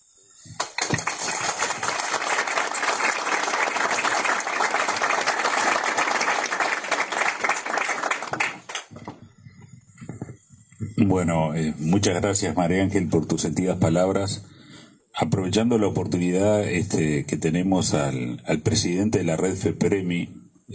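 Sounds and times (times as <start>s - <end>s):
audience applause: 0.6s - 9.0s
speech: 11.0s - 14.5s, 15.2s - 20.7s.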